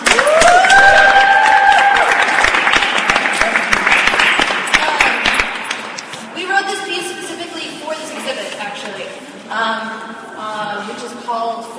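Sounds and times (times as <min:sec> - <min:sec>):
audience round of applause: 0:00.0 - 0:05.8.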